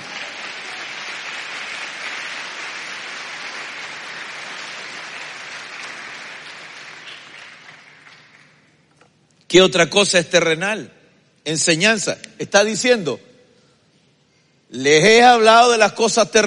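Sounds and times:
audience clapping hands: 0.0 - 8.9
speech: 9.5 - 13.3, 14.7 - 16.4.

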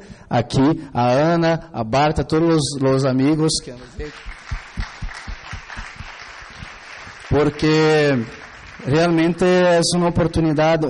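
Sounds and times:
speech: 0.3 - 4.4, 7.3 - 10.8
heavier rhythmic thumps: 3.6 - 8.3
audience applause: 3.8 - 9.3.

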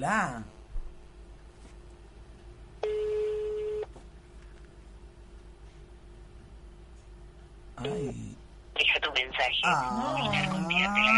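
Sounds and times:
speech: 0.0 - 0.6, 7.8 - 8.4, 9.2 - 11.1
faint hum: 0.0 - 11.1
telephone ringback tone on a call line: 2.8 - 3.9.

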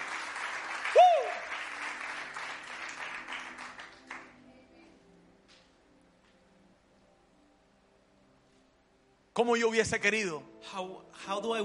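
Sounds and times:
audience applause at a church service: 0.0 - 4.4
speech: 9.4 - 11.6.

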